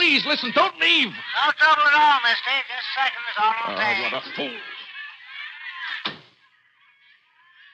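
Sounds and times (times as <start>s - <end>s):
laughter: 0.0s - 6.1s
speech: 0.2s - 4.8s
door being closed: 6.0s - 6.3s.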